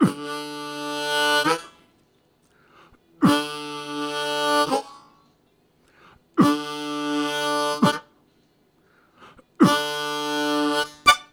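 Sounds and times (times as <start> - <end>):
low harmonica note: 0.0 - 1.8, 3.2 - 5.0, 6.4 - 8.1, 9.6 - 11.3.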